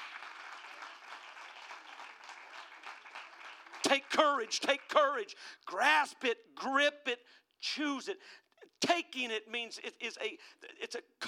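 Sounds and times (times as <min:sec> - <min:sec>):
audience clapping: 0:00.0 - 0:05.2
speech: 0:03.9 - 0:11.2.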